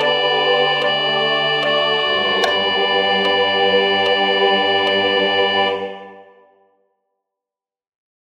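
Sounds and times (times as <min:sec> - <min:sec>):
hymn: 0:00.0 - 0:06.5.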